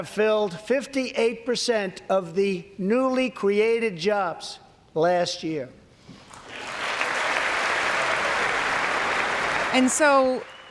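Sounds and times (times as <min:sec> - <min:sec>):
speech: 0:00.0 - 0:05.8, 0:09.7 - 0:10.5
audience clapping: 0:06.3 - 0:10.6.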